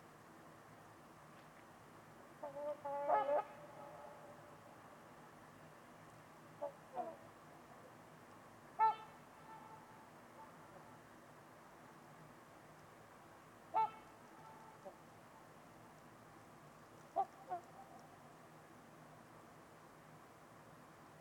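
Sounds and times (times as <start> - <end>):
hiss: 0.0 - 21.2
trumpeter swan honking: 2.4 - 4.7, 6.6 - 7.3, 8.8 - 11.0, 13.7 - 15.1, 17.1 - 18.2
speech: 2.5 - 3.6.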